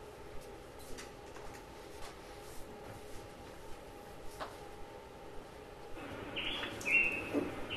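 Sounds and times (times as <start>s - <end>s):
low steady hum: 0.0s - 7.7s
quetzal or flowerpiercer calls: 6.3s - 7.7s.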